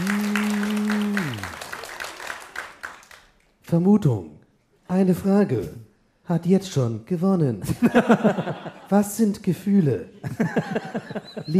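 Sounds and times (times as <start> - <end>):
live audience applause: 0.0 - 3.4
speech: 3.7 - 11.5
laughter: 7.7 - 9.0, 10.2 - 11.5.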